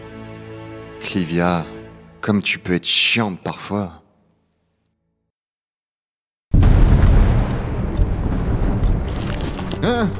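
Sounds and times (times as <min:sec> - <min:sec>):
speech: 0:01.0 - 0:04.0
powerful tremor, explosive rumble: 0:06.5 - 0:10.1.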